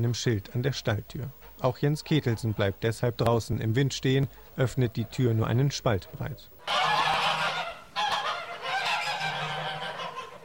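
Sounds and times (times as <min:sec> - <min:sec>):
speech: 0:00.0 - 0:07.0
flock of startled geese honking in a barn: 0:06.2 - 0:10.4.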